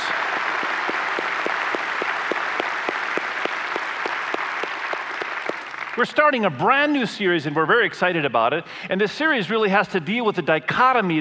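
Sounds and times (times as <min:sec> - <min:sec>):
audience applause: 0:00.0 - 0:06.6
speech: 0:06.0 - 0:11.2.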